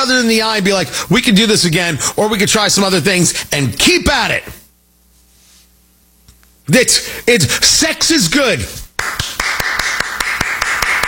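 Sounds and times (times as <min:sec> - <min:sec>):
speech: 0:00.0 - 0:04.6, 0:06.7 - 0:09.4
constant hum: 0:00.0 - 0:11.0
one person clapping alone: 0:09.0 - 0:11.0.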